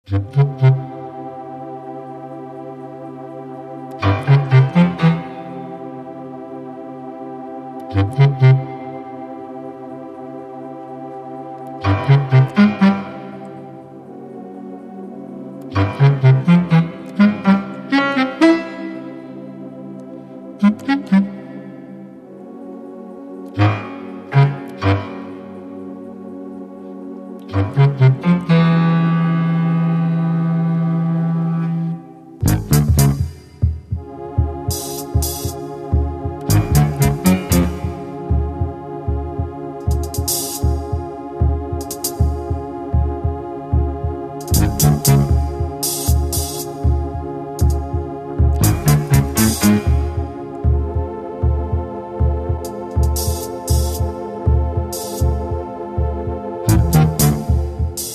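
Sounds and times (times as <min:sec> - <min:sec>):
suspense music: 0:00.1 - 0:58.1.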